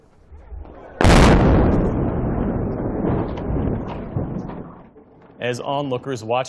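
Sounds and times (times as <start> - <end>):
Black Hawk Bridge demolition blast: 0.4 - 5.4
Black Hawk Bridge collapsing into the Mississippi River: 1.0 - 5.0
speech: 5.4 - 6.4.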